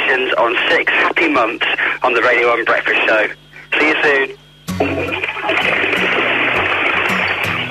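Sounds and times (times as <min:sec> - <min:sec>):
speech: 0:00.1 - 0:05.6
toilet flushing: 0:04.8 - 0:07.6.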